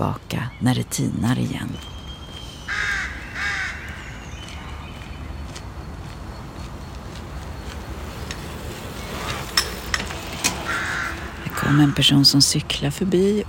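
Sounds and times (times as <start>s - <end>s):
speech: 0.0s - 1.9s, 11.7s - 13.4s
hum: 0.0s - 13.4s
rooks cawing: 2.4s - 4.8s, 7.2s - 12.7s.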